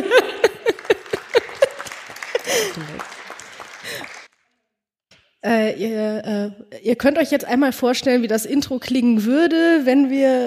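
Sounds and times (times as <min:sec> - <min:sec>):
people laughing: 0:00.0 - 0:04.2
small audience clapping: 0:00.0 - 0:04.4
speech: 0:05.4 - 0:10.4.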